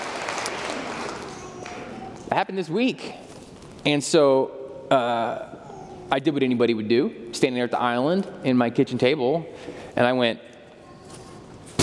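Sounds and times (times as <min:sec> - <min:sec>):
applause from a group of people: 0:00.0 - 0:01.9
speech: 0:02.3 - 0:10.6.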